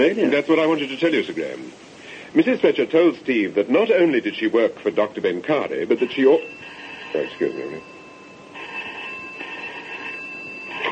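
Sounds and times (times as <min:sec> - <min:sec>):
speech: 0:00.0 - 0:07.9
telephone ringing with electronic trill: 0:05.9 - 0:10.9.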